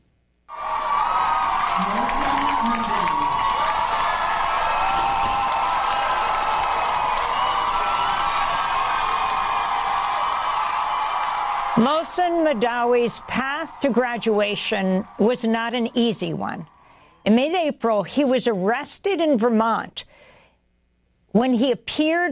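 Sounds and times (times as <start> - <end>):
students' thunderous applause: 0.5 - 16.8
speech: 11.8 - 20.2, 21.3 - 22.3.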